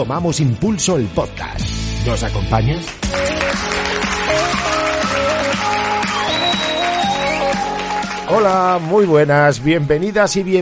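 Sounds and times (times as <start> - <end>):
speech: 0.0 - 3.7, 8.3 - 10.6
audience applause: 2.9 - 9.3.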